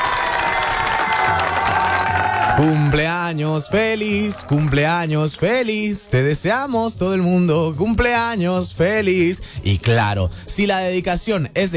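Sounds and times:
applause for birthday: 0.0s - 5.2s
speech: 2.6s - 11.7s.

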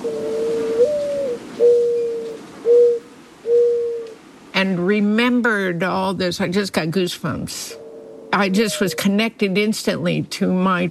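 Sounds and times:
dove cooing near oleanders on a dirt path: 0.0s - 4.2s, 7.7s - 9.1s
speech: 4.6s - 7.8s, 8.4s - 10.8s.

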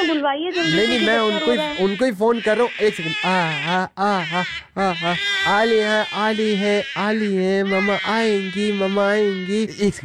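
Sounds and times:
baby crying: 0.0s - 10.0s
speech: 0.1s - 10.0s.

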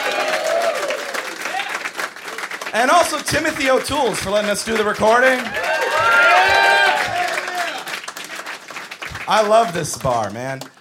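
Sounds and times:
comedy club audience in a Denver bar cheering the host: 0.0s - 2.0s, 2.8s - 8.5s
comedy club audience in a Denver bar applauding the host: 0.0s - 10.8s
speech: 2.7s - 6.6s, 9.3s - 10.8s.

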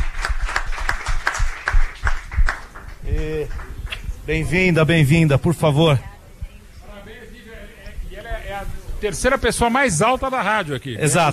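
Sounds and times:
clapping: 0.0s - 4.1s
speech: 4.3s - 6.1s, 9.0s - 11.3s.

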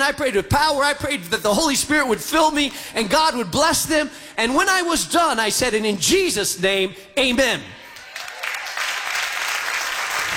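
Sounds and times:
speech: 0.0s - 7.8s
congregation clapping during a sermon: 7.9s - 10.3s.

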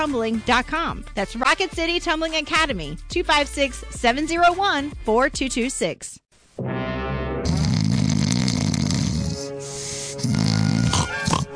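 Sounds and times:
speech: 0.0s - 6.8s
loud congested mouth breathing: 7.4s - 11.5s.

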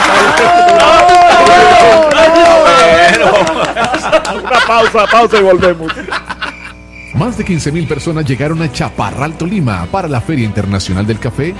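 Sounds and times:
crowd cheering and yelling: 0.0s - 3.6s
people clapping: 0.0s - 4.8s
laughter: 0.0s - 6.8s
speech: 4.7s - 6.2s, 7.2s - 11.5s.

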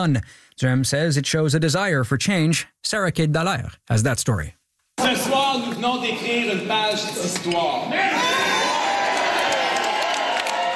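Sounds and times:
speech: 0.0s - 8.6s
ecstatic crowd cheering at an election night rally: 7.9s - 10.7s.

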